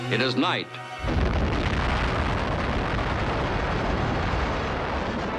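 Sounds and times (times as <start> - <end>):
speech: 0.1 - 1.4
atomic bomb test explosion: 1.0 - 5.3.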